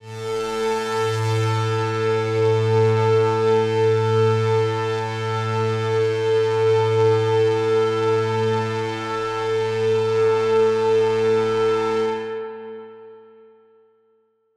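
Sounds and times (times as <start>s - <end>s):
dystopian drone in A: 0.1s - 12.2s.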